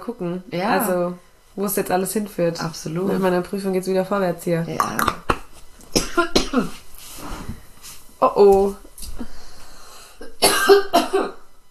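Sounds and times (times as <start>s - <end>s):
speech: 0.0s - 5.2s, 6.2s - 6.8s, 8.2s - 9.3s
person coughing: 6.0s - 6.8s, 10.2s - 11.4s.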